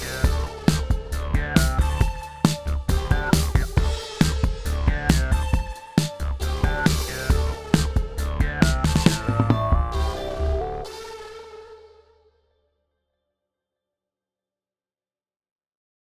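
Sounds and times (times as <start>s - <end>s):
weird funky groove: 0.0s - 10.1s.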